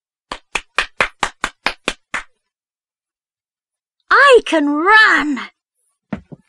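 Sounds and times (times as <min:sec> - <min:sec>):
hands clapping: 0:00.3 - 0:02.4
speech: 0:04.4 - 0:05.6.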